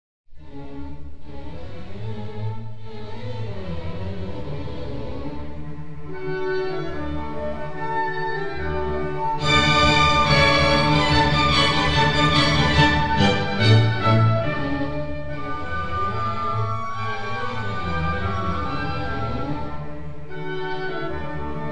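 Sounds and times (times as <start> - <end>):
orchestra playing in concert: 5.3 - 21.6.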